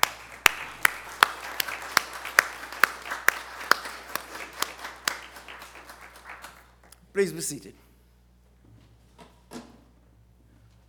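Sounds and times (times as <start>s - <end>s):
audience applause: 0.0s - 7.7s
speech: 7.2s - 7.9s.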